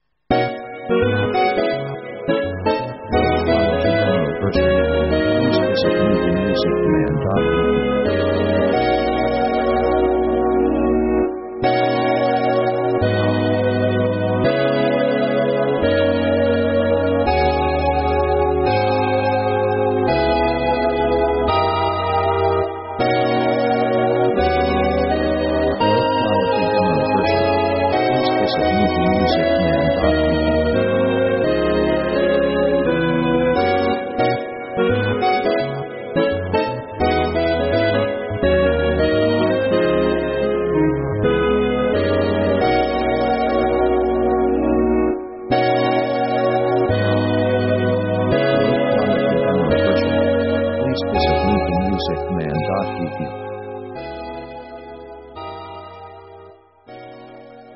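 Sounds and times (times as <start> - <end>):
jazz music: 0.5 - 36.2, 37.2 - 53.3.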